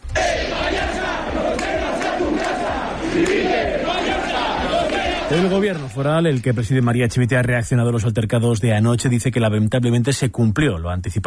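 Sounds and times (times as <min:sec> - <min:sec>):
large crowd shouting protest chants: 0:00.0 - 0:05.9
speech: 0:05.3 - 0:11.2.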